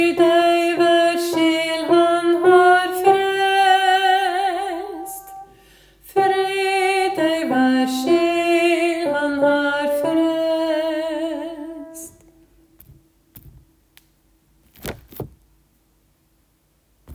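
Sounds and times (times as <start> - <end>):
soprano voice: 0.0 - 12.4.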